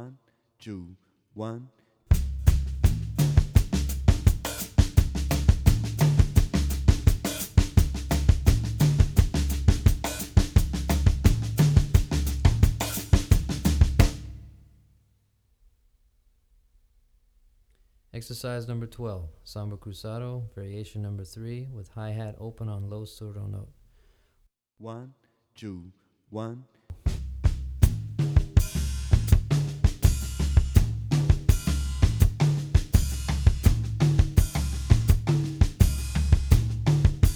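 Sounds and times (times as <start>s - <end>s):
drumset playing samba cruzado: 2.1s - 14.6s, 26.9s - 37.3s.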